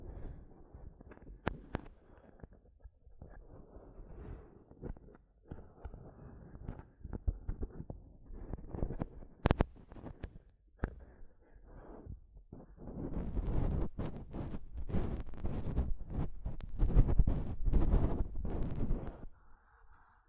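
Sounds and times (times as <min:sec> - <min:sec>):
tapping on a microphone: 0:04.8 - 0:11.1, 0:12.6 - 0:19.3.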